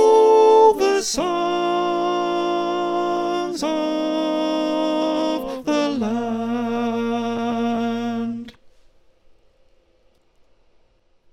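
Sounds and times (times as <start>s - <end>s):
choir with soprano: 0.0s - 8.6s.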